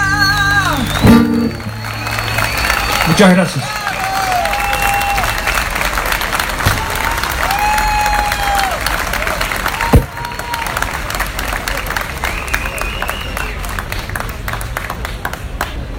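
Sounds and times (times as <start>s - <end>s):
audience applause at a campaign rally: 0.1s - 15.8s
cheers and whistles: 0.2s - 6.1s, 6.6s - 10.9s, 12.1s - 13.8s
speech: 3.2s - 3.7s.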